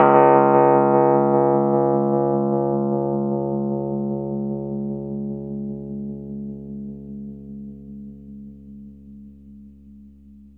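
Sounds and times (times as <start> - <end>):
Rhodes electric piano in D flat: 0.0 - 7.6.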